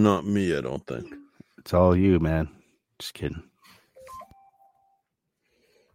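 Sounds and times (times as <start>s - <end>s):
speech: 0.0s - 3.5s
electronic beeps like phone keypad tones: 4.0s - 5.0s.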